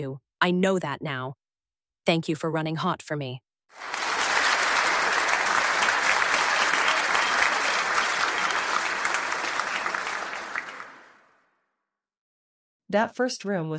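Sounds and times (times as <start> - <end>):
speech: 0.0 - 1.4, 2.0 - 4.0, 12.9 - 13.7
audience applause: 3.8 - 11.3.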